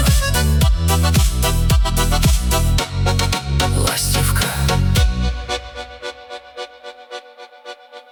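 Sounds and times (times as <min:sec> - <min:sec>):
Ukrainian music for the car: 0:00.0 - 0:06.1.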